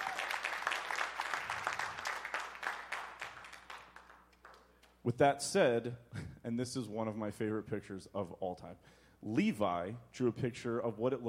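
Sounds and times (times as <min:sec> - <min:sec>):
audience applause: 0:00.0 - 0:04.6
speech: 0:05.0 - 0:11.2.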